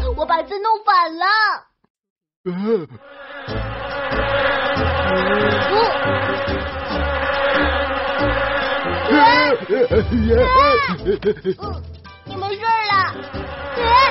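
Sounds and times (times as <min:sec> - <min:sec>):
speech: 0:00.3 - 0:01.7, 0:02.4 - 0:03.6, 0:09.2 - 0:11.9
bees buzzing: 0:03.0 - 0:10.2
laughter: 0:03.2 - 0:11.8, 0:13.2 - 0:14.0.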